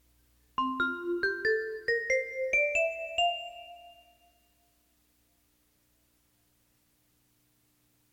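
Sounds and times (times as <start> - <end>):
melody: 0.6 - 4.4.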